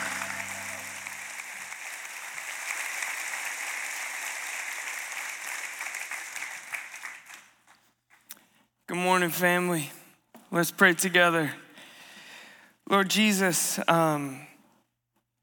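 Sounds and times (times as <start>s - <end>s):
church congregation applauding to welcome a speaker: 0.0s - 7.7s
speech: 8.9s - 11.6s, 12.9s - 14.5s.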